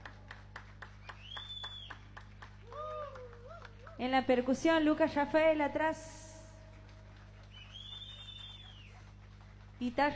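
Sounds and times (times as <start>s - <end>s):
audience clapping for a violinist: 0.0s - 5.0s, 6.4s - 10.1s
low hum: 0.0s - 10.1s
whistles: 1.0s - 2.1s, 7.5s - 9.0s
speech: 4.0s - 6.2s, 9.8s - 10.1s.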